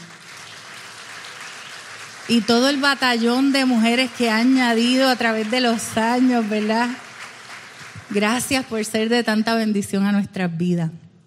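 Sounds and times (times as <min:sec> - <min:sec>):
audience applause: 0:00.0 - 0:08.8
speech: 0:02.3 - 0:07.0, 0:08.1 - 0:11.0.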